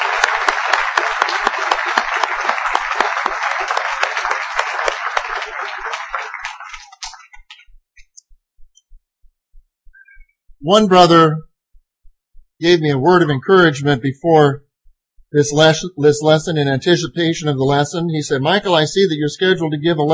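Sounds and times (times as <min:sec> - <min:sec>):
audience applauding: 0:00.0 - 0:07.6
speech: 0:10.6 - 0:11.5, 0:12.6 - 0:14.6, 0:15.3 - 0:20.1.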